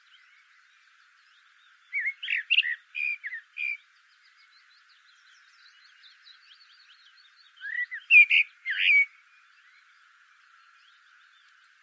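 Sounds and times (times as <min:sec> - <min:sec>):
Eurasian blackbird Turdus merula singing: 0:00.0 - 0:11.8.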